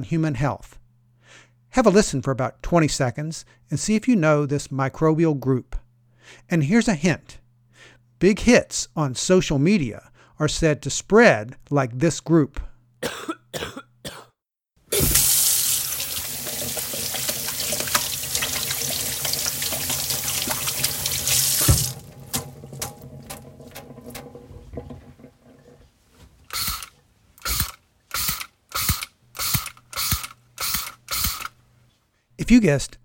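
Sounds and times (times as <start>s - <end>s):
speech: 0.0s - 7.4s, 8.2s - 14.2s, 32.5s - 33.0s
spray bottle of isopropyl alcohol spritzing: 14.9s - 18.6s, 26.5s - 31.5s.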